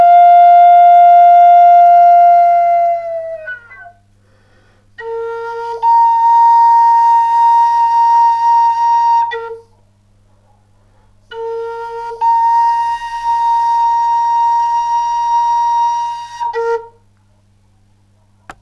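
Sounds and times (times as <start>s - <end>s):
Native American bamboo flute in B flat: 0.0s - 4.0s, 5.0s - 9.7s, 11.3s - 17.0s.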